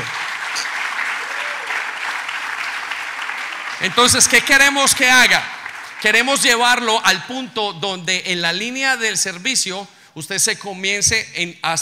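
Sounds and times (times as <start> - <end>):
audience applause: 0.0 - 6.9
speech: 3.8 - 11.8.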